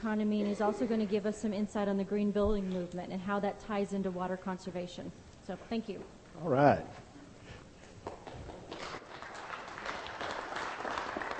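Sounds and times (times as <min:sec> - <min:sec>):
speech: 0:00.0 - 0:07.0
audience applause: 0:08.2 - 0:11.3.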